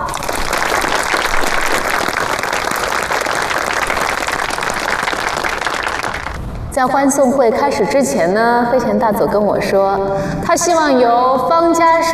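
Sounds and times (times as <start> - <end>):
warm applause from audience: 0.0 - 6.4
speech: 6.8 - 12.1.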